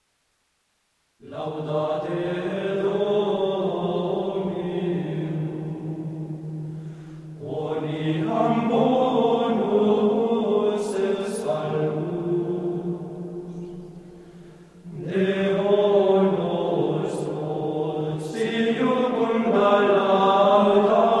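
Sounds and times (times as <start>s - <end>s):
Gregorian chant: 1.2s - 21.1s.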